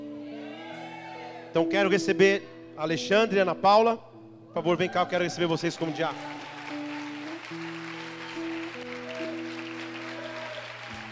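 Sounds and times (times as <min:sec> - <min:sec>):
sustained keyboard chords: 0:00.0 - 0:11.1
speech: 0:01.5 - 0:06.4
audience applauding: 0:05.4 - 0:11.1.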